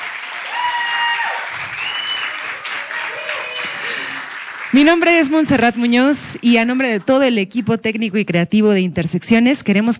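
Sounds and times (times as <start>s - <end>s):
audience applause: 0.0s - 6.2s
speech: 4.7s - 9.9s.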